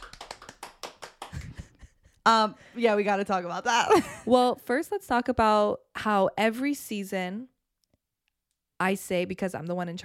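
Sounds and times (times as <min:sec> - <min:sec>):
small round of hand clapping: 0:00.0 - 0:02.1
speech: 0:02.3 - 0:07.5, 0:08.8 - 0:10.0.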